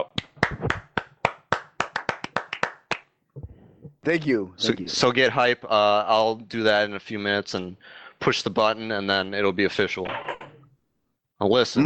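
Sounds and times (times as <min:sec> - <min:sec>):
hand claps: 0:00.0 - 0:03.5
speech: 0:04.0 - 0:10.3, 0:11.4 - 0:11.8.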